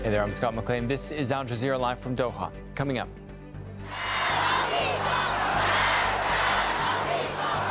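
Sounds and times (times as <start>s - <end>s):
speech: 0.1s - 3.2s
huge crowd chanting at funeral: 3.9s - 7.6s.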